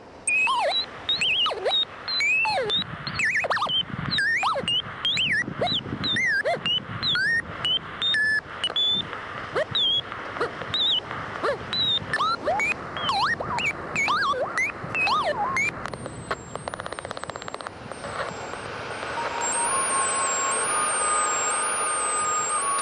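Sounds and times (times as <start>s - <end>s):
faint high whine: 0.0s - 22.8s
chirping swooping whistles: 0.3s - 10.1s, 10.7s - 11.0s, 11.7s - 22.8s
hairdryer blowing to simulate high winds: 17.9s - 22.8s.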